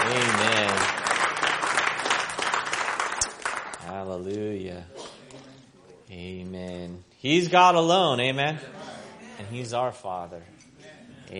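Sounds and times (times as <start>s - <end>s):
church congregation clapping in praise during an evening service: 0.0s - 4.1s
speech: 7.2s - 8.8s, 9.5s - 10.6s.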